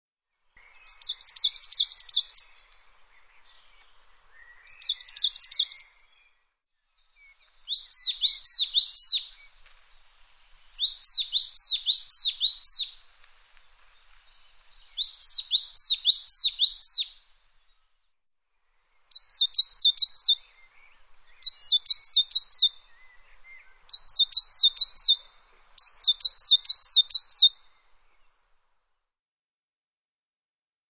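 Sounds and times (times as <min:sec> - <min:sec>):
bird whistling: 0:00.8 - 0:02.6, 0:03.5 - 0:05.9, 0:07.7 - 0:09.5, 0:10.6 - 0:13.0, 0:14.9 - 0:17.2, 0:19.1 - 0:20.6, 0:21.3 - 0:27.6.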